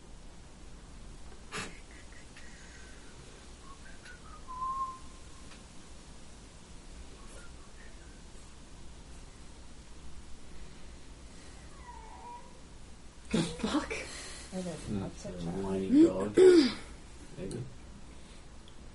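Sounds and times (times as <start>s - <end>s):
dog whining: 11.6s - 12.6s
speech: 13.3s - 16.8s, 17.4s - 17.8s.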